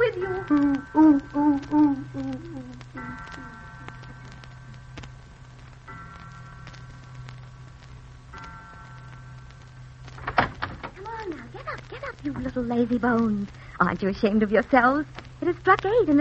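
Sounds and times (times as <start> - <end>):
speech: 0.5 - 1.8, 12.6 - 16.1
door opening: 10.2 - 11.0.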